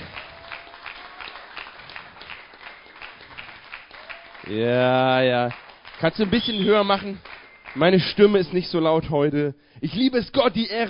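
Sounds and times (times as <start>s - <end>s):
audience applause: 0.0s - 8.6s
speech: 4.5s - 10.8s.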